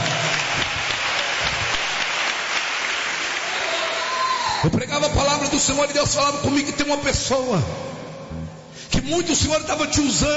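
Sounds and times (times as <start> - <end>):
crowd audience clapping hands: 0.0 - 4.3
speech: 4.6 - 7.9, 9.1 - 10.3.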